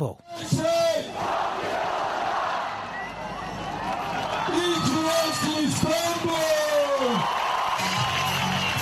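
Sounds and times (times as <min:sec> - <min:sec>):
huge crowd cheering at night celebration in Istanbul: 0:00.3 - 0:08.8
crowd chanting: 0:01.0 - 0:03.5
high whistles: 0:02.9 - 0:03.7.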